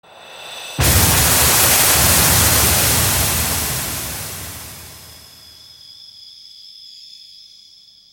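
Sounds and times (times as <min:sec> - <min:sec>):
thunder strike: 0:00.8 - 0:05.5.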